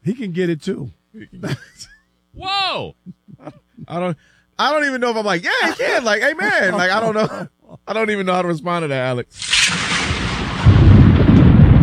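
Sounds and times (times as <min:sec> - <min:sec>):
speech: 0:00.0 - 0:09.9
laughter: 0:01.2 - 0:04.2, 0:05.4 - 0:07.9
thunder crash: 0:09.4 - 0:11.8.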